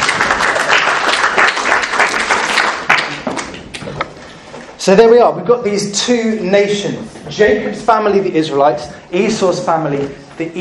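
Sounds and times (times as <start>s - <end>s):
audience applause: 0.0s - 3.6s
speech: 4.8s - 10.5s.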